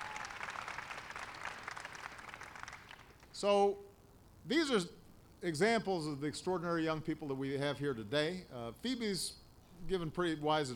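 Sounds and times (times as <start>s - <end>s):
audience applause: 0.0s - 3.3s
speech: 3.4s - 10.7s.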